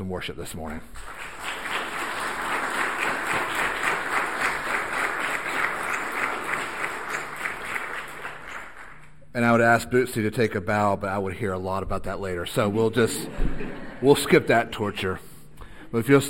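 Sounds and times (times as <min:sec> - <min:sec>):
speech: 0:00.0 - 0:01.4, 0:09.3 - 0:15.3, 0:15.9 - 0:16.2
round of applause for choir: 0:00.9 - 0:09.1
laughter: 0:12.6 - 0:14.9.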